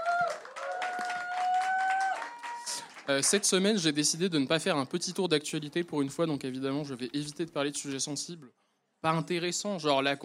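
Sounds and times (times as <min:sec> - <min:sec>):
audience applause: 0:00.0 - 0:03.5
speech: 0:03.1 - 0:10.2.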